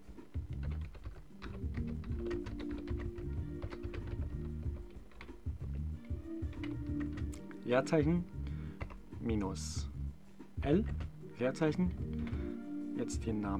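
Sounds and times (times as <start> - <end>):
typing a title on a computer keyboard: 0.0 - 9.5, 10.6 - 11.2
speech: 7.7 - 8.4, 9.2 - 9.9, 10.6 - 12.3, 13.0 - 13.5.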